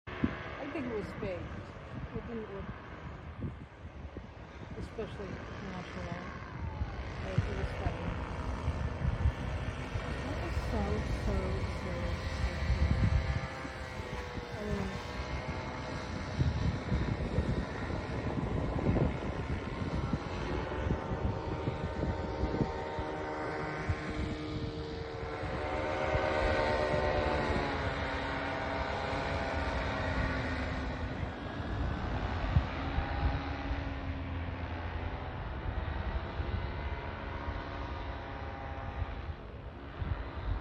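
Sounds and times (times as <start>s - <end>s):
powered paraglider engines buzzing over the beach in San Clemente: 0.0s - 40.5s
wind rumble: 0.1s - 40.5s
voices: 0.6s - 2.8s, 4.7s - 8.6s, 10.0s - 12.9s, 13.8s - 15.2s.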